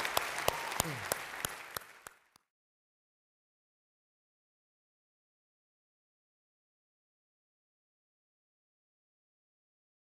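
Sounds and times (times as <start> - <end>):
audience applause: 0.0 - 2.4.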